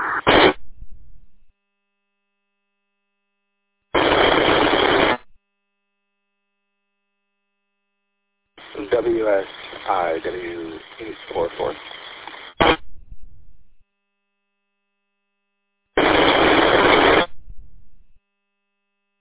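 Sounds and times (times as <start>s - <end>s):
radio static: 0.0s - 0.8s, 4.0s - 5.3s, 8.6s - 13.1s, 16.0s - 18.2s
tinny voice talking over the radio: 8.6s - 12.1s
speech: 9.2s - 12.0s.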